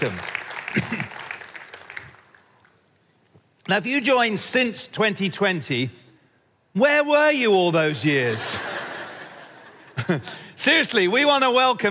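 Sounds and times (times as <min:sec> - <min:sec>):
speech: 0:00.0 - 0:01.2, 0:03.7 - 0:06.0, 0:06.8 - 0:08.7, 0:10.1 - 0:11.8
crowd clapping: 0:00.0 - 0:02.9
laughter: 0:08.3 - 0:10.6.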